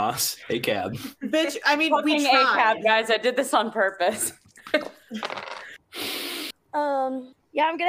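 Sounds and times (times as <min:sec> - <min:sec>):
speech: 0:00.0 - 0:05.6, 0:06.8 - 0:07.8
dice thrown during a tabletop game: 0:05.2 - 0:05.7.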